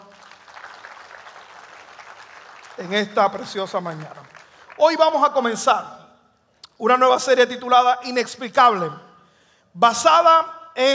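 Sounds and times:
audience applause: 0.0s - 4.8s
speech: 2.8s - 6.0s, 6.8s - 9.0s, 9.8s - 10.9s.

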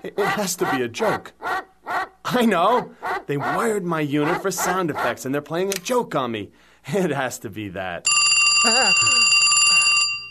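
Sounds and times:
speech: 0.0s - 1.6s, 2.3s - 9.4s
telephone bell ringing: 8.1s - 10.2s.

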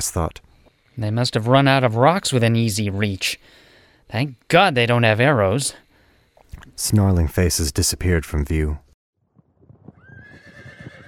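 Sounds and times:
speech: 0.0s - 5.8s, 6.5s - 8.8s
horse whinnying: 10.0s - 11.0s.

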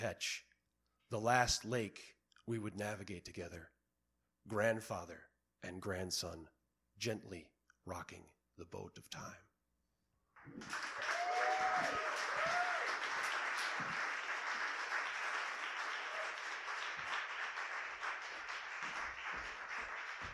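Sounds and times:
speech: 0.0s - 0.5s, 1.1s - 3.8s, 4.4s - 9.5s, 10.4s - 11.1s
scattered applause from audience: 10.4s - 20.3s.

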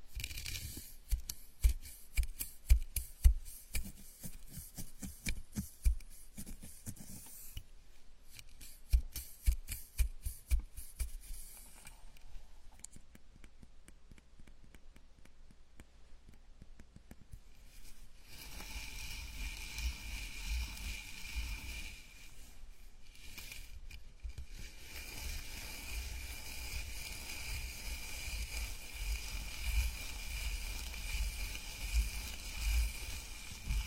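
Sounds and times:
dense brushing hiss: 0.0s - 7.6s, 8.2s - 12.1s, 17.5s - 33.8s
scalp massage rubbing and tapping: 0.0s - 33.8s.

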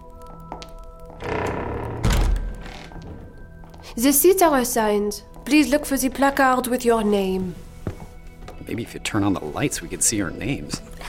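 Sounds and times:
door being closed: 1.2s - 3.5s
speech: 3.9s - 7.6s, 8.7s - 11.0s.

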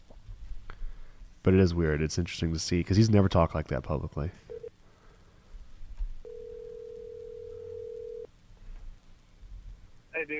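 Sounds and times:
speech: 1.4s - 4.4s
ringback tone of an outgoing phone call: 6.2s - 8.3s.

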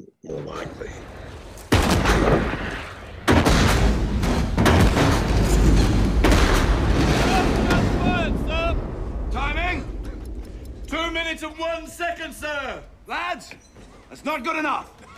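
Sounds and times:
heavy cannon fire from a sailing warship's broadside: 1.1s - 10.0s
speech: 11.4s - 15.0s.

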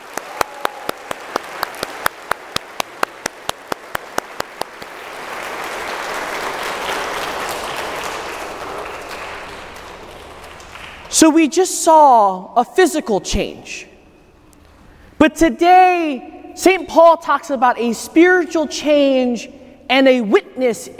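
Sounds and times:
crowd applause: 0.0s - 11.1s
speech: 11.2s - 13.9s, 15.2s - 20.9s.

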